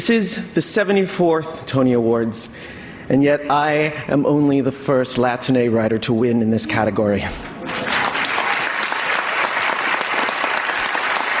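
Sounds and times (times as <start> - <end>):
speech: 0.0 - 7.9
audience applause: 7.6 - 11.3.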